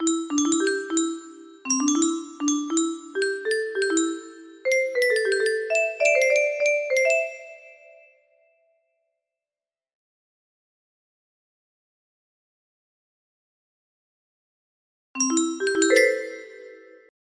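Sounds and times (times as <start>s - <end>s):
music box: 0.0s - 8.1s, 15.2s - 17.1s.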